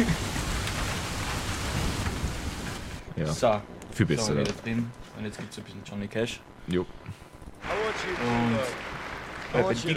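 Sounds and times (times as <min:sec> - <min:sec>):
steady rain outside on a cold day: 0:00.0 - 0:04.2, 0:07.6 - 0:09.9
speech: 0:03.2 - 0:08.9, 0:09.5 - 0:09.9.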